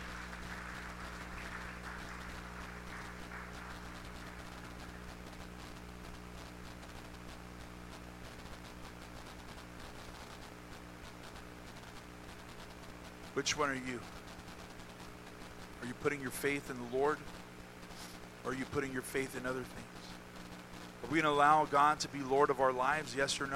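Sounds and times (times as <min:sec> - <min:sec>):
hand clapping: 0:00.0 - 0:05.1
speech: 0:13.4 - 0:14.2, 0:15.9 - 0:17.4, 0:18.4 - 0:19.9, 0:21.1 - 0:23.5.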